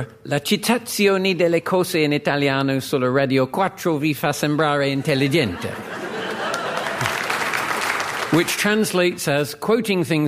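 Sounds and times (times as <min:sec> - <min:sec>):
speech: 0:00.0 - 0:06.0, 0:08.3 - 0:10.2
laughter: 0:04.9 - 0:08.7
audience applause: 0:06.0 - 0:09.2.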